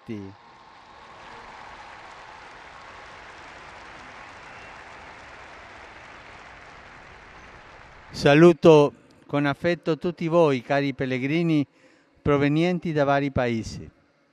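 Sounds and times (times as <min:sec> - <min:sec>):
audience applause: 0:00.0 - 0:08.6
speech: 0:00.1 - 0:00.4, 0:08.1 - 0:14.0.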